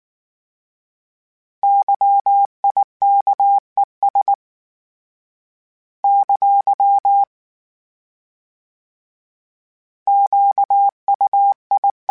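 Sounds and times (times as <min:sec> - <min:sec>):
Morse code CW code groups: 0:01.6 - 0:04.4, 0:06.1 - 0:07.3, 0:10.1 - 0:12.0.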